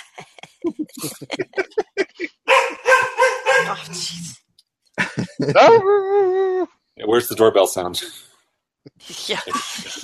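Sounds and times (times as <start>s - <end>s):
laughter: 0.0s - 2.5s, 5.0s - 6.2s, 9.3s - 10.0s
speech: 0.6s - 1.8s, 3.8s - 4.4s, 5.4s - 6.3s, 7.1s - 8.3s, 9.3s - 10.0s
dog barking and whining: 2.4s - 3.9s.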